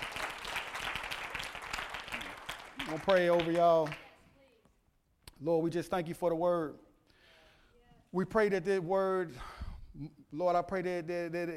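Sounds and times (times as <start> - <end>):
audience clapping: 0.0 - 4.2
speech: 2.9 - 4.0, 5.4 - 6.8, 8.1 - 11.5.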